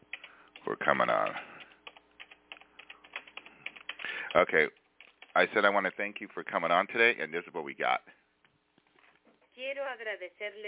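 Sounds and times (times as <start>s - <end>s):
computer keyboard typing: 0.0s - 5.5s
speech: 0.8s - 1.5s, 4.4s - 4.8s, 5.4s - 8.2s, 9.6s - 10.6s.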